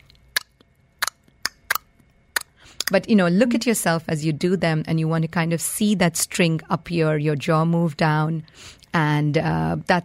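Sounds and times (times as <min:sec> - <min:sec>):
loud tongue clicks: 0:00.0 - 0:03.0
speech: 0:02.8 - 0:10.0.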